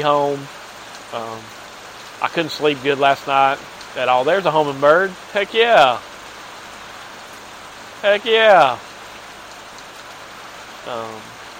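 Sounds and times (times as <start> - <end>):
speech: 0.0 - 1.6, 2.2 - 6.1, 8.0 - 8.9, 10.8 - 11.3
rain falling: 0.0 - 11.5.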